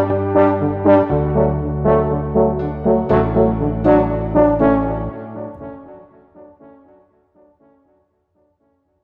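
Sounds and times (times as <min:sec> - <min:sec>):
fun pumping tuba: 0:00.0 - 0:06.8.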